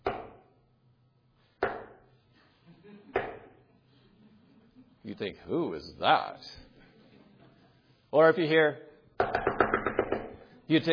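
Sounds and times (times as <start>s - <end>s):
speech: 5.0s - 6.7s, 8.1s - 8.9s, 10.7s - 10.9s
knocking on a door: 9.2s - 10.3s.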